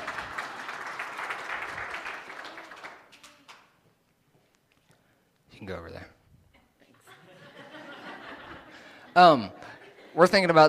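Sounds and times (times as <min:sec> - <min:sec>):
audience clapping: 0:00.0 - 0:03.8
speech: 0:05.6 - 0:06.2, 0:09.2 - 0:09.6, 0:10.2 - 0:10.6
laughter: 0:07.0 - 0:10.5.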